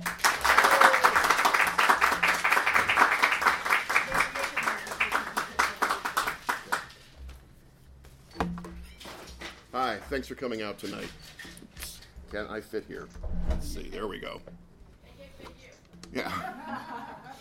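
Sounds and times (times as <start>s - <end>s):
audience clapping welcoming author Richard Kadrey at a book reading: 0.0s - 7.2s
speech: 10.1s - 11.4s, 12.3s - 14.6s, 16.2s - 17.0s
laughter: 16.2s - 17.4s.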